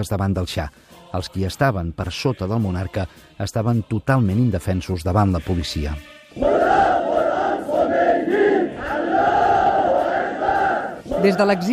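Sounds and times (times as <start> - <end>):
speech: 0.0 - 6.8, 11.2 - 11.7
massive crowd roaring and chanting in unison: 6.1 - 11.7.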